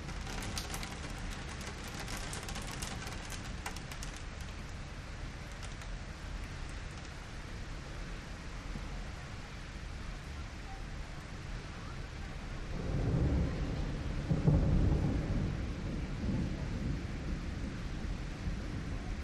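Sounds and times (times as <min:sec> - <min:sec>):
storm lashing window: 0:00.0 - 0:19.2.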